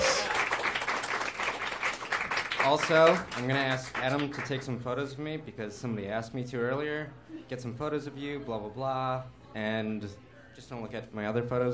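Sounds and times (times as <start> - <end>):
audience applause: 0.0 - 4.4
speech: 2.6 - 11.7.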